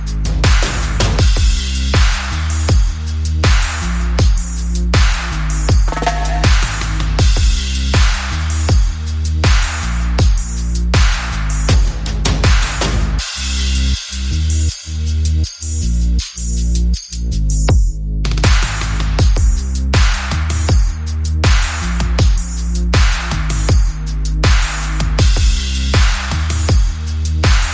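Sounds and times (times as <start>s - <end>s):
bass: 0.0s - 27.7s
percussion: 0.0s - 27.7s
sound effects: 5.9s - 7.0s.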